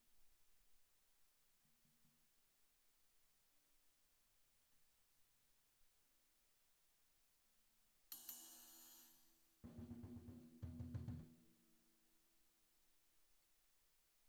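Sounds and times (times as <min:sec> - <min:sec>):
tom drum: 0:08.2 - 0:11.7.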